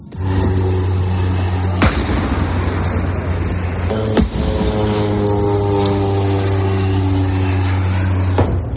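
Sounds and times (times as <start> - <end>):
distant Israeli bomb explosions from the Gaza border: 0.2 - 8.7.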